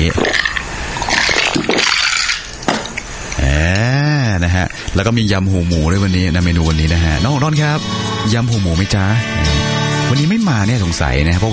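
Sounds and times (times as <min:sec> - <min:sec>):
soju, lemon and soda cocktail sloshing in a shaken glass: 0:00.0 - 0:05.1
speech: 0:04.9 - 0:11.5.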